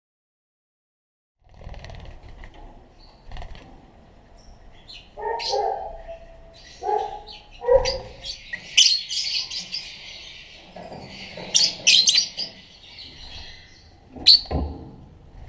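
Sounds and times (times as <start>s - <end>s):
Black-cheeked lovebird making harsh shrill squawks and chirps: 4.9s - 10.5s, 11.1s - 14.5s.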